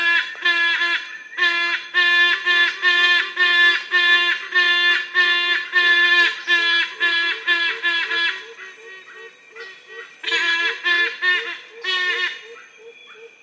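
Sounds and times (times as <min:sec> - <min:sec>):
yellow-casqued hornbill honking calls: 0:00.0 - 0:13.4.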